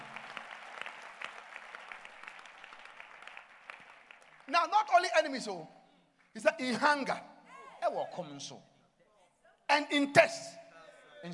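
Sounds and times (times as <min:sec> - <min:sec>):
audience clapping hands: 0:00.0 - 0:05.3
speech: 0:04.5 - 0:05.8, 0:06.4 - 0:08.7, 0:09.7 - 0:10.6.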